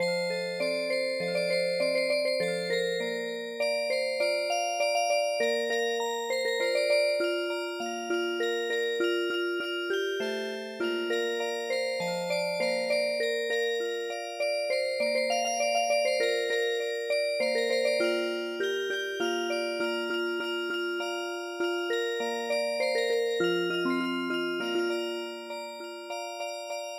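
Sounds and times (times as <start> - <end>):
traditional music box: 0.0 - 26.9.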